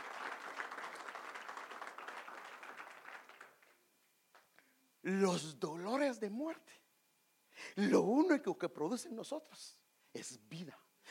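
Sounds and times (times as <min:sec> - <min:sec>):
audience applause: 0:00.0 - 0:03.8
speech: 0:05.0 - 0:06.8, 0:07.8 - 0:10.8.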